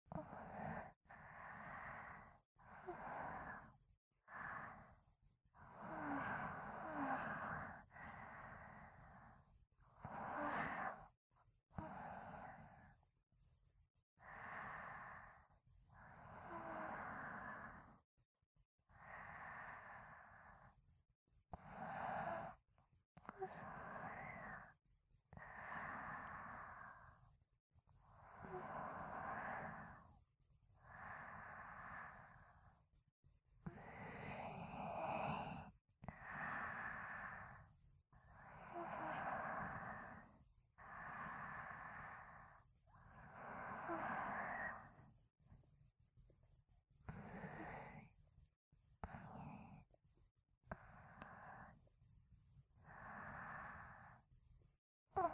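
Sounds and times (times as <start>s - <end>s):
sleeping breathing: 0.0s - 13.0s, 14.2s - 18.0s, 18.9s - 20.8s, 21.5s - 22.6s, 23.2s - 27.2s, 28.2s - 30.2s, 30.8s - 32.8s, 33.6s - 45.2s, 47.0s - 48.2s, 49.0s - 50.0s, 50.7s - 51.8s, 52.8s - 54.3s, 55.2s - 55.3s.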